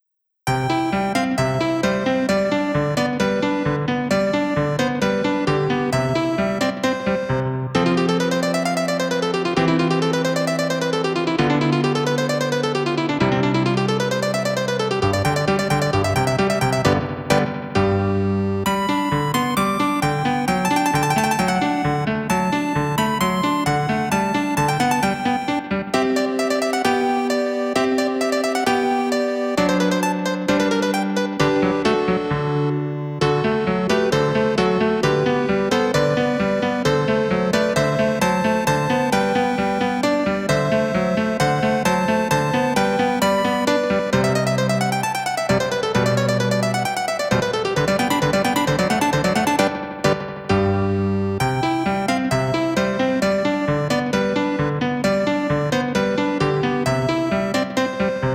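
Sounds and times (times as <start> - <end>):
piano playing in a lesson: 0.5 - 58.3.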